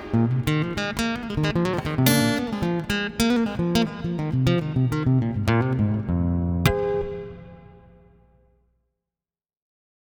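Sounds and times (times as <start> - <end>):
guitar playing: 0.0 - 8.4.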